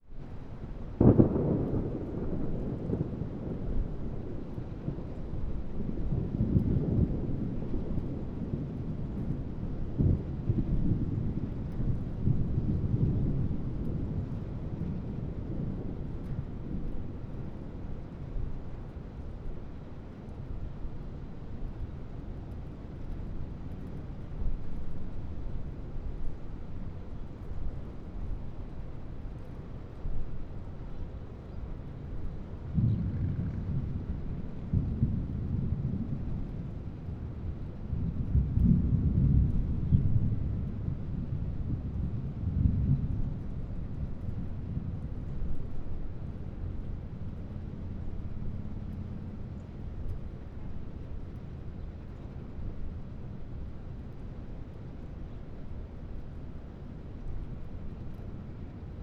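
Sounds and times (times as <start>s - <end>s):
wind: 0.0s - 59.0s
thunder: 0.8s - 18.1s, 32.0s - 47.1s.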